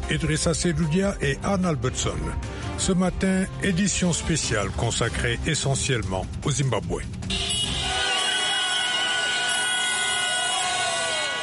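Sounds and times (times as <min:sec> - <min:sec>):
speech: 0:00.1 - 0:07.6
car horns in the streets of Harare: 0:07.2 - 0:11.4
cheering in the streets of Harare: 0:07.3 - 0:11.4.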